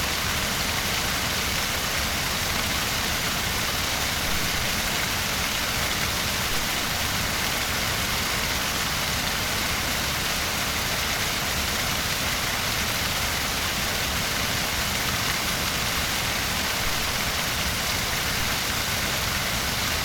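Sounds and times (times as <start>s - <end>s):
small waterfall: 0.0s - 20.0s.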